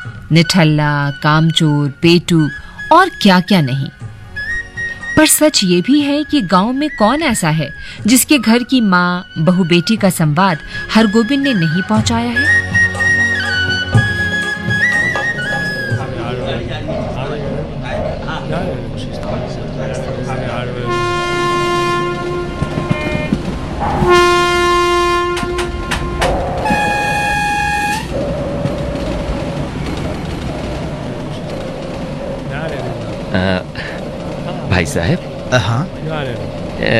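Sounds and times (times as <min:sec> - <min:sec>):
mail train rumbling along: 0:00.0 - 0:36.9
speech: 0:00.3 - 0:04.0, 0:05.2 - 0:12.8, 0:33.4 - 0:33.9, 0:34.8 - 0:36.9
indistinct voices murmuring: 0:15.2 - 0:21.0, 0:29.8 - 0:36.9
mail train horn blasts: 0:20.8 - 0:28.2.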